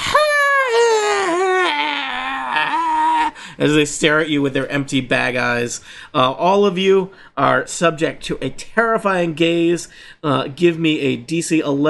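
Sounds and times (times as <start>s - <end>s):
person imitating a weird breathy howl: 0.0s - 3.4s
speech: 3.6s - 11.8s.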